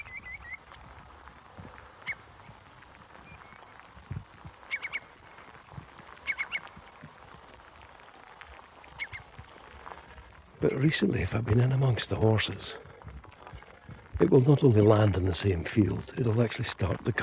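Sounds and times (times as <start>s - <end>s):
curlew giving chattering whickering calls: 0.0s - 1.0s, 1.6s - 10.0s
speech: 10.6s - 12.9s, 14.2s - 17.2s.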